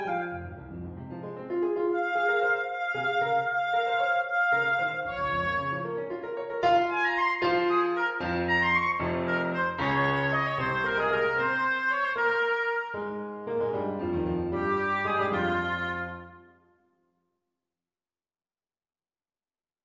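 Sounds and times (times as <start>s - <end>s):
oboe vignette: 0.0s - 0.9s, 1.8s - 16.6s.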